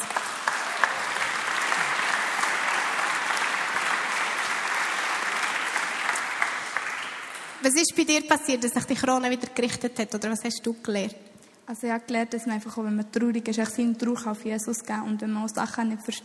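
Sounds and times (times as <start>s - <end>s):
audience clapping: 0.0s - 7.8s
speech: 7.6s - 16.2s.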